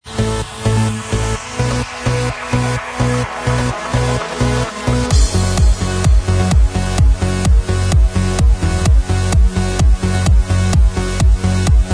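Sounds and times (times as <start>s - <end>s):
instrumental remix track: 0.0s - 11.9s.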